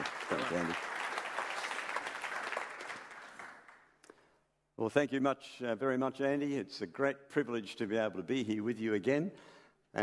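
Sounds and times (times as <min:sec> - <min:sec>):
audience at a church service clapping to welcome a speaker: 0:00.0 - 0:04.1
speech: 0:00.5 - 0:00.9, 0:04.8 - 0:10.0.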